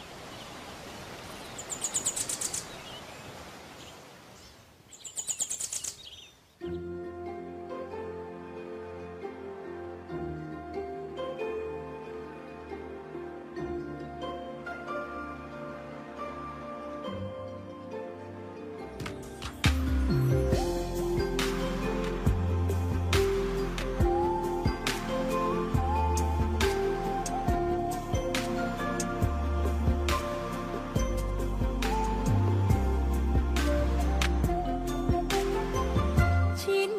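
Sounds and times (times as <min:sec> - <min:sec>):
song intro music: 0:06.8 - 0:36.8.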